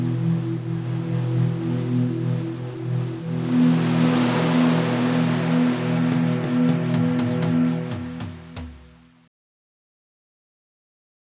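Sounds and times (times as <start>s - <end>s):
strange wind: 0.0s - 8.9s.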